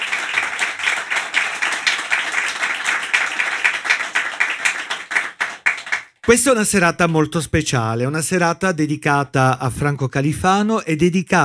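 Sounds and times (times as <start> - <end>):
live crowd applause: 0.0 - 6.2
speech: 6.3 - 11.4.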